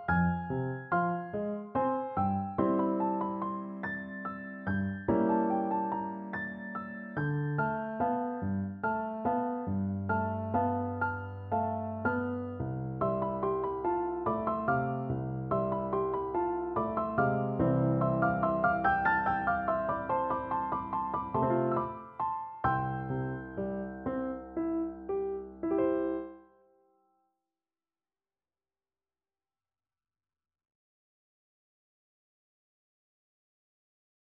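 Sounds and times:
piano duet: 0:00.0 - 0:26.6.

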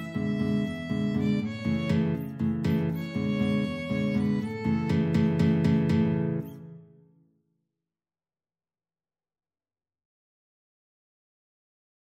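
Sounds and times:
violin: 0:00.0 - 0:06.7
guitar: 0:00.0 - 0:07.3.

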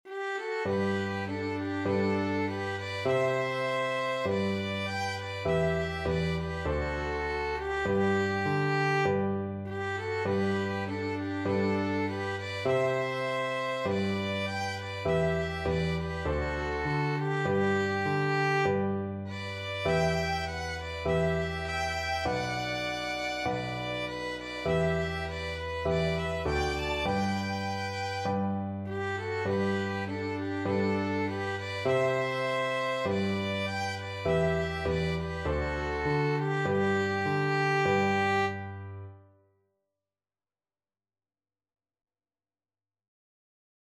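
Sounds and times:
violin duet: 0:00.0 - 0:39.1.

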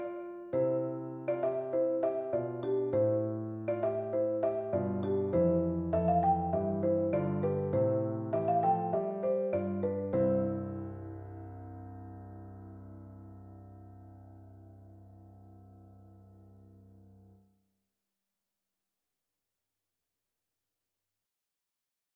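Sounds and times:
marimba: 0:00.0 - 0:10.9.

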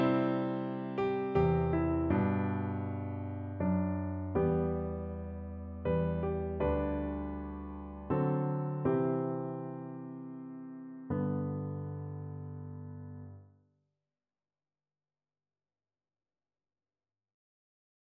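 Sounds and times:
piano duet: 0:00.0 - 0:13.5.

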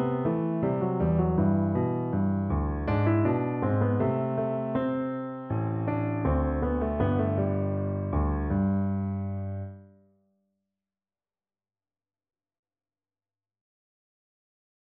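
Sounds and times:
piano duet: 0:00.0 - 0:10.0.

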